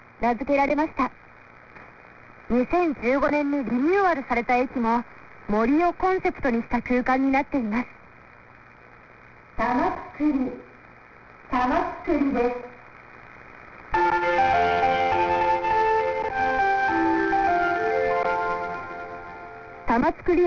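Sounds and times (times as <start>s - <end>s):
speech: 0.2s - 1.2s, 2.5s - 8.0s, 9.6s - 10.6s, 11.5s - 12.7s, 19.9s - 20.4s
train station departure melody chime: 14.0s - 19.9s.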